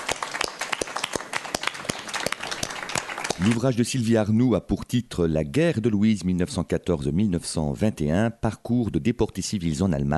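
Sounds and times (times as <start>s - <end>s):
audience applause: 0.0s - 3.6s
speech: 3.4s - 10.1s.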